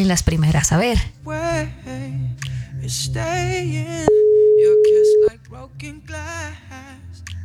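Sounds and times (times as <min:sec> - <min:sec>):
speech: 0:00.0 - 0:02.2, 0:02.9 - 0:04.4, 0:05.5 - 0:07.4
telephone line ringing out with a long steady tone: 0:04.1 - 0:05.3.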